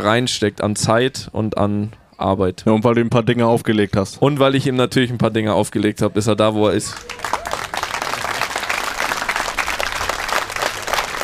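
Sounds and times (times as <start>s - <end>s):
speech: 0.0s - 7.5s
audience applause: 6.6s - 11.2s.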